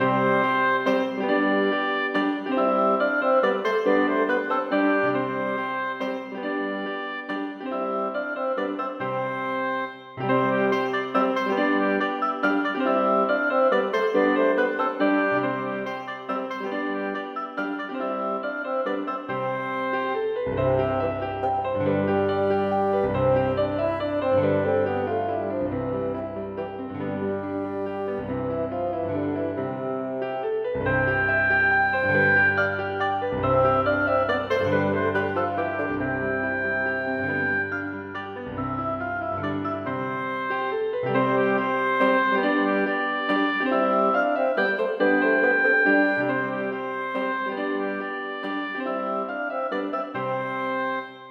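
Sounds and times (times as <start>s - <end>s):
bassoon: 0.0s - 51.2s
oboe: 0.0s - 51.2s
piano: 0.0s - 51.2s.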